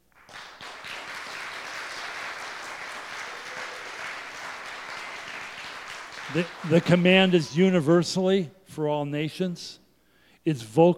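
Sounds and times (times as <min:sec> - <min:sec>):
audience clapping: 0:00.0 - 0:07.8
speech: 0:06.3 - 0:09.8, 0:10.4 - 0:10.9.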